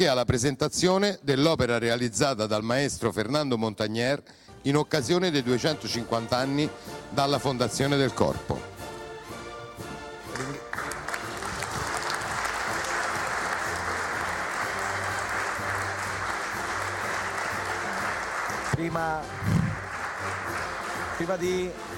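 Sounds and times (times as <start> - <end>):
speech: 0.0 - 8.7, 21.2 - 21.9
crowd applause: 10.3 - 21.9.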